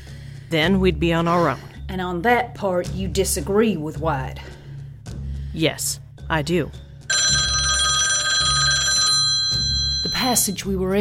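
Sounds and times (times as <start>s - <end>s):
speech: 0.5s - 4.6s, 5.5s - 6.9s, 10.2s - 10.9s
old-fashioned telephone bell ringing: 7.1s - 10.6s.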